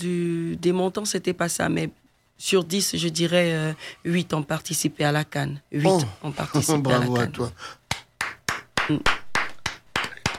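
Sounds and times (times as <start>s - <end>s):
speech: 0.0s - 7.8s, 8.9s - 9.2s
hand claps from a few people: 7.0s - 10.3s.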